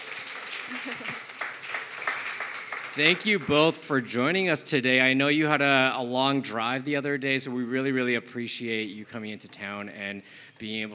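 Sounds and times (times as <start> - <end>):
faint audience applause: 0.0 - 3.8
speech: 0.7 - 1.3, 3.0 - 10.9.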